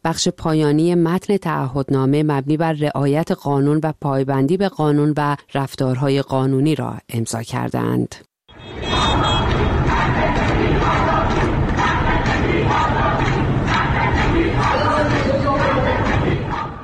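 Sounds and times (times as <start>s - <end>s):
speech: 0.0s - 8.9s
lawyers chanting and shouting in front of the Central Bar Association building in Tehran: 8.6s - 16.8s.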